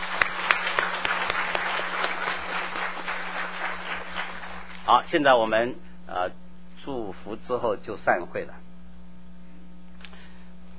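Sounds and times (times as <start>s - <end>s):
audience applause: 0.0s - 4.8s
speech: 4.9s - 8.6s.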